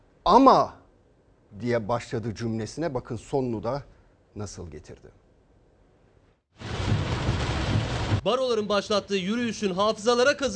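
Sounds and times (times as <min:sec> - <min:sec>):
speech: 0:00.3 - 0:00.8, 0:01.5 - 0:05.2, 0:08.2 - 0:10.5
deep rumbling: 0:06.6 - 0:08.3
heavy rain: 0:06.6 - 0:08.3.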